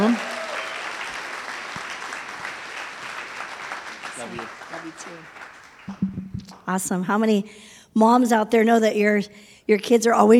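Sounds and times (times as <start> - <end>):
audience applause: 0.0 - 6.6
speech: 4.2 - 10.3.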